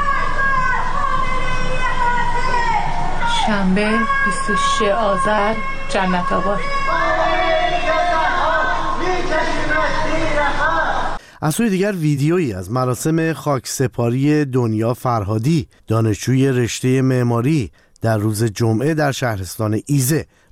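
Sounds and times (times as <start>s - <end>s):
anti-government slogans chanted from residential buildings in Jannatabad and Marzdaran Boulevard: 0.0s - 11.2s
speech: 3.5s - 6.8s, 11.4s - 20.4s.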